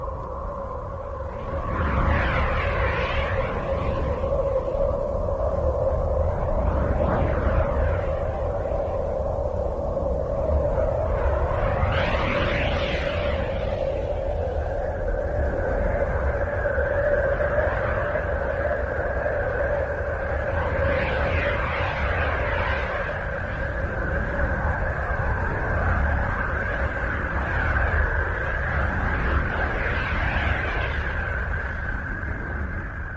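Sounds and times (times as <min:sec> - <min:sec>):
recorded sounds of the planet Uranus: 0:00.0 - 0:33.1.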